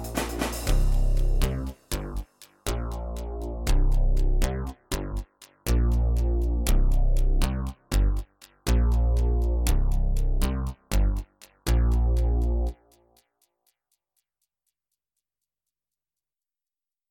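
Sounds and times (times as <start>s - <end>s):
electronic music: 0.0s - 13.2s.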